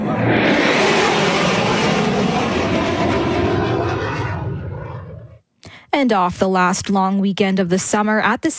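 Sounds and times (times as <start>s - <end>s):
air show aircraft roaring: 0.0s - 5.9s
speech: 6.0s - 8.5s.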